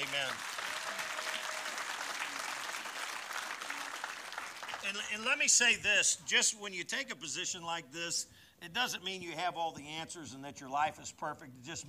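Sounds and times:
audience applauding: 0.0s - 5.1s
speech: 0.1s - 1.0s, 4.8s - 11.8s.

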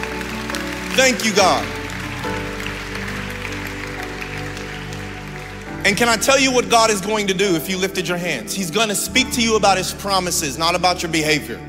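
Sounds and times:
audience clapping hands: 0.0s - 7.1s
sustained organ or keyboard chords: 0.0s - 11.6s
speech: 1.0s - 2.4s, 5.8s - 11.6s.

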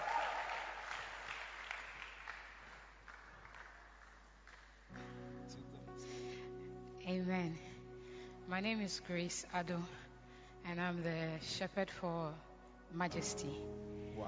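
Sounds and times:
audience clapping at a religious gathering: 0.0s - 5.2s
speech: 7.1s - 7.8s, 8.5s - 10.0s, 10.6s - 14.2s.

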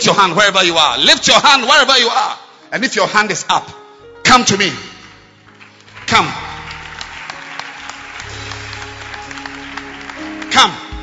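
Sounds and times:
speech: 0.1s - 4.9s, 6.1s - 6.4s, 10.6s - 10.8s
people clapping hands: 5.5s - 11.0s.

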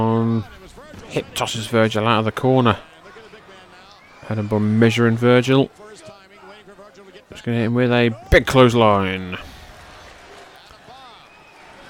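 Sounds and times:
speech: 0.0s - 2.9s, 4.3s - 6.2s, 7.3s - 9.5s
small round of applause from the Poughkeepsie crowd: 0.6s - 7.3s, 8.4s - 11.8s.

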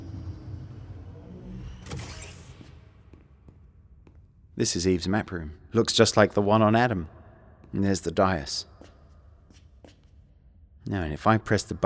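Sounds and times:
fictional ground car whirring as it slows in a tunnel: 0.0s - 2.7s
speech: 4.6s - 8.9s, 10.8s - 11.8s.

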